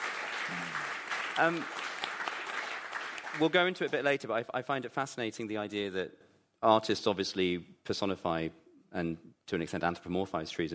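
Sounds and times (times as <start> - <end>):
audience applause: 0.0 - 3.7
speech: 0.5 - 1.8, 3.3 - 10.7.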